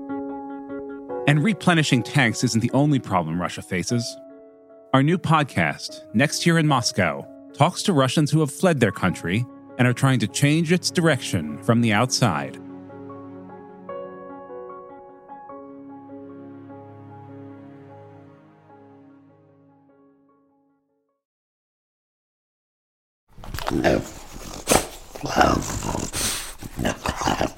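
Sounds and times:
speech: 1.3s - 4.2s, 4.9s - 12.6s, 23.7s - 24.2s
French bulldog snorting and growling: 23.5s - 27.5s.

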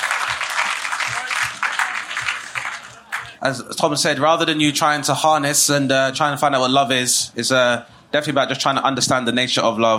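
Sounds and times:
audience applause: 0.0s - 3.4s
speech: 3.4s - 9.9s.

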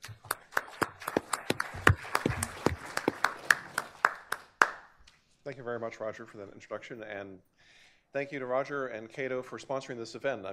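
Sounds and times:
audience applause welcoming a speaker at a Cato-sponsored book event: 0.0s - 4.9s
speech: 5.5s - 10.5s.

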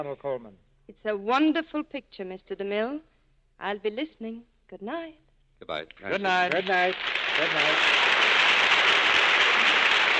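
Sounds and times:
speech: 0.0s - 8.1s
studio audience applause: 6.2s - 10.1s.

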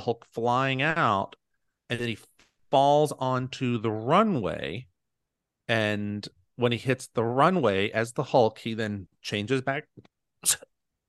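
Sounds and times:
speech: 0.0s - 4.9s, 5.7s - 10.7s
person coughing: 10.4s - 10.8s.

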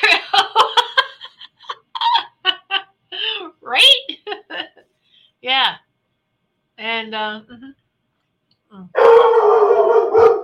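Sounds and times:
laughter: 0.0s - 3.0s
speech: 7.1s - 7.8s
dog howling: 9.0s - 10.4s.

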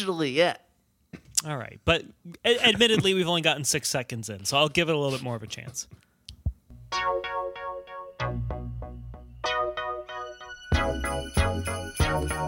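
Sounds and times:
speech: 0.0s - 0.6s, 1.4s - 6.1s
upbeat song of plucked chords over a low beat: 6.7s - 12.4s
sleigh bells jingling: 10.5s - 12.4s.

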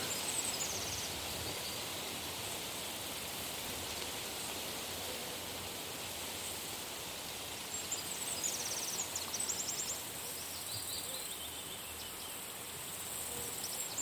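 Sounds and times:
wind rustling through tree leaves: 0.0s - 14.0s.

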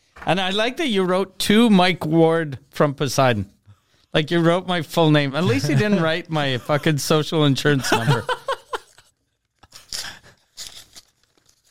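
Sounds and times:
speech: 0.2s - 8.4s
laughter: 5.4s - 7.0s, 7.7s - 9.0s
paper envelope holding a Christmas card and a check being ripped open: 9.7s - 11.6s.

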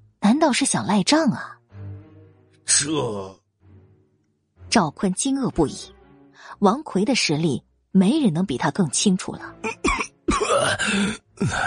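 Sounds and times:
speech: 0.4s - 1.6s, 2.7s - 3.4s, 4.7s - 9.9s, 10.6s - 11.6s
violent coughing: 9.6s - 11.6s.

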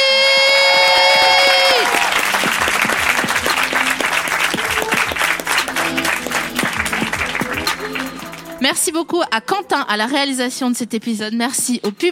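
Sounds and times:
audience applause: 0.2s - 8.6s
speech: 9.0s - 12.1s.

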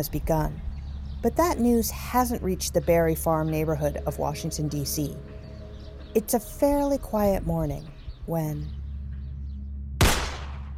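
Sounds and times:
speech: 0.0s - 5.4s, 6.1s - 8.8s
gunshot: 10.0s - 10.7s.

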